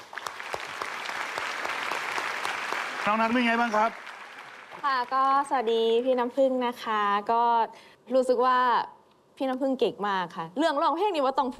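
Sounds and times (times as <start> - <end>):
audience applause on a Thai television show: 0.0 - 5.9
speech: 3.1 - 4.0, 4.8 - 11.5.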